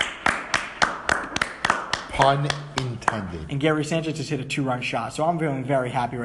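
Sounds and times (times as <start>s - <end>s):
hand clapping: 0.0s - 3.6s
speech: 2.2s - 6.2s.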